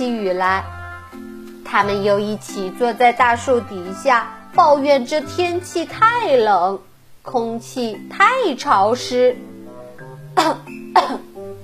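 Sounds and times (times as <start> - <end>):
speech: 0.0 - 9.5, 10.4 - 11.3
person imitating a monkey coughing: 10.4 - 11.4.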